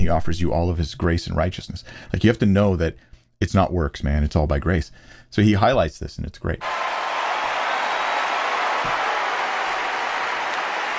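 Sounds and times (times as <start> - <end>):
speech: 0.1 - 7.1
audience applauding in a room: 6.6 - 10.9.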